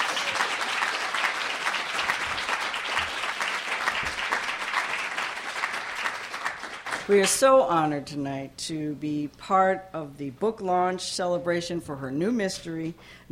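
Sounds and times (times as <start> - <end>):
audience clapping welcoming a guest author at a book launch in Baltimore: 0.0 - 7.4
speech: 7.1 - 13.3.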